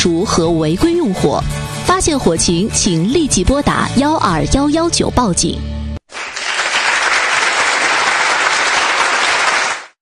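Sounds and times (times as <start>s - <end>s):
speech: 0.0s - 5.8s
applause: 6.1s - 10.0s.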